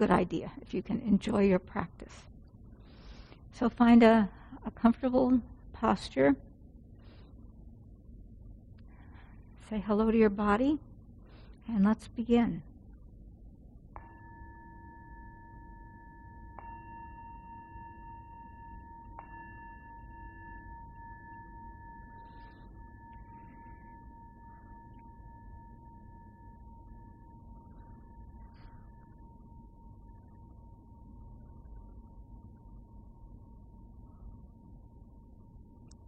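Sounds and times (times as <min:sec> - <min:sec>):
speech: 0:00.0 - 0:02.3, 0:03.6 - 0:06.5, 0:09.7 - 0:10.9, 0:11.7 - 0:12.7
meditation bell ringing: 0:14.0 - 0:36.0.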